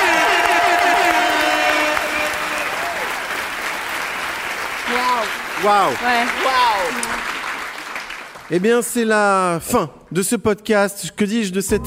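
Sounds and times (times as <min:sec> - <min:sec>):
crowd standing ovation applause: 0:00.0 - 0:08.8
speech: 0:05.6 - 0:07.4, 0:08.5 - 0:11.8.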